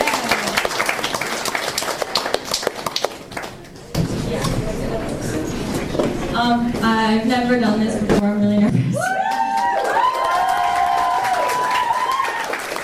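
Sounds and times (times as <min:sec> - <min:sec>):
audience applause: 0:00.0 - 0:03.7, 0:09.0 - 0:12.8
crowd noise: 0:00.0 - 0:12.8
speech: 0:06.4 - 0:09.2.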